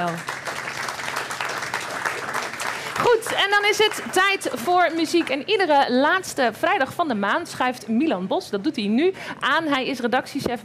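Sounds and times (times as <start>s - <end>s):
speech: 0.0s - 0.3s, 3.0s - 10.6s
audience applause: 0.0s - 5.4s.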